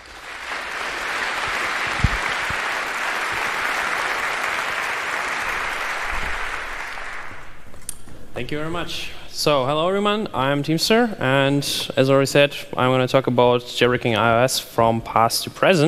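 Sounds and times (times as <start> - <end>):
large audience applause: 0.0 - 7.6
speech: 8.4 - 15.8.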